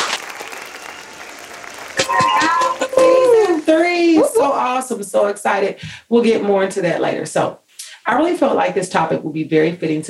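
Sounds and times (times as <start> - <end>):
round of applause: 0.0 - 3.6
speech: 3.0 - 10.0.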